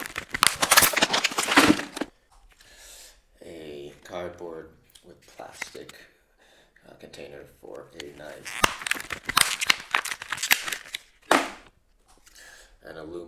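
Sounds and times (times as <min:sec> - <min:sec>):
cardboard and plastic knife packaging crinkling and scraping: 0:00.0 - 0:02.1, 0:08.1 - 0:11.7
person speaking: 0:00.0 - 0:02.1, 0:07.6 - 0:11.6.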